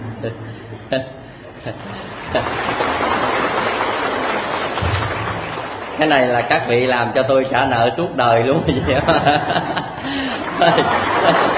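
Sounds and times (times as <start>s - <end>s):
laughter: 0.2s - 2.8s, 8.6s - 11.5s
speech: 0.2s - 3.1s, 6.0s - 11.5s
audience applause: 1.8s - 6.6s, 9.5s - 11.5s.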